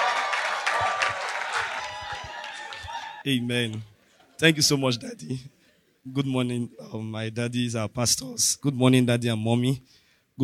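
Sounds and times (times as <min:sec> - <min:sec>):
audience clapping at a church service: 0:00.0 - 0:03.3
speech: 0:03.2 - 0:10.4.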